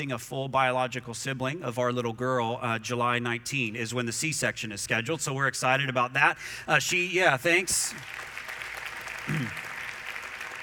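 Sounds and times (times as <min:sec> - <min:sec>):
speech: 0:00.0 - 0:08.3, 0:09.3 - 0:09.6
audience clapping: 0:07.7 - 0:10.6.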